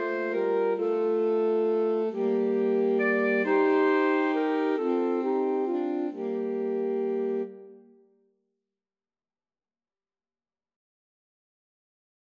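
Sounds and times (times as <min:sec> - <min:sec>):
alto saxophone trio playing a folk tune: 0:00.0 - 0:07.9.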